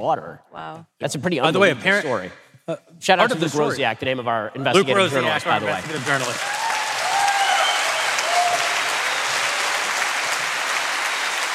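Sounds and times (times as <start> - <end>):
speech: 0.0 - 6.6
audience applause in a live theater: 5.0 - 11.5.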